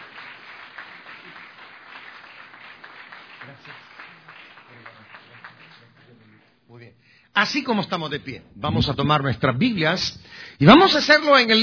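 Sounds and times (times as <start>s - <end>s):
audience applause: 0.0s - 6.5s
speech: 3.5s - 4.0s, 6.9s - 11.6s.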